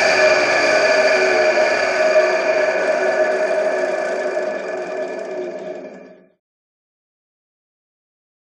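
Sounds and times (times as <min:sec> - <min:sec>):
lathe starting: 0:00.0 - 0:06.3.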